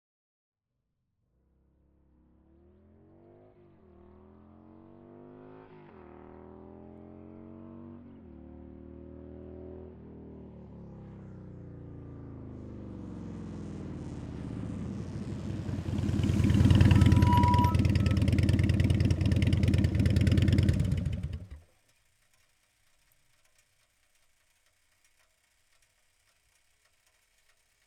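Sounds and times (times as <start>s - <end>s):
2004 Harley Davidson Night Train motorcycle starting, driving fast and stopping: 7.0s - 27.8s.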